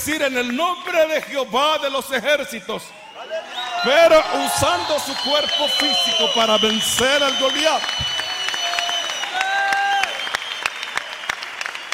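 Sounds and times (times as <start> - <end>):
speech: 0.0 - 8.2
audience applauding: 3.5 - 11.9.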